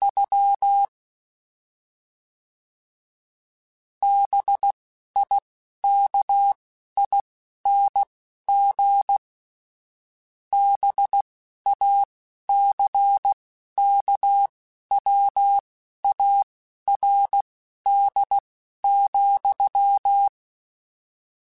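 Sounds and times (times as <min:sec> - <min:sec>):
Morse code CW code groups: 0:04.0 - 0:09.2, 0:10.6 - 0:20.3.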